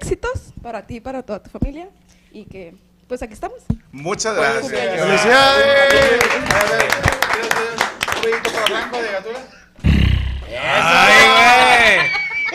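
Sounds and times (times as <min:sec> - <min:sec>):
speech: 0:00.3 - 0:09.9, 0:10.5 - 0:12.2
applause: 0:05.8 - 0:09.5
laughter: 0:10.5 - 0:12.5.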